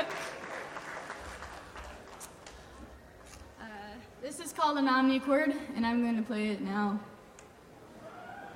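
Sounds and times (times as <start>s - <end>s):
audience applauding: 0.0s - 2.6s
speech: 4.4s - 7.1s.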